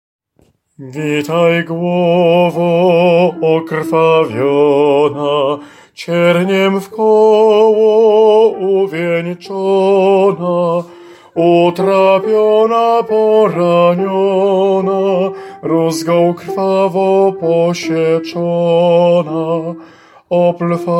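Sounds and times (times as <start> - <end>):
soprano voice: 0.8 - 20.9.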